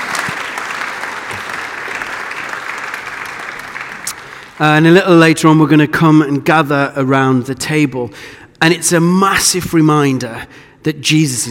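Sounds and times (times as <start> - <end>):
audience applause: 0.0 - 4.6
speech: 4.6 - 11.4.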